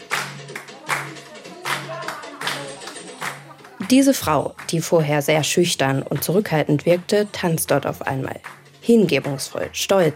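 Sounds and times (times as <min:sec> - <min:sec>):
women cheering on a dancer: 0:00.0 - 0:04.8
group of women clapping for a dancer: 0:00.0 - 0:07.1, 0:08.1 - 0:10.1
speech: 0:03.9 - 0:10.1.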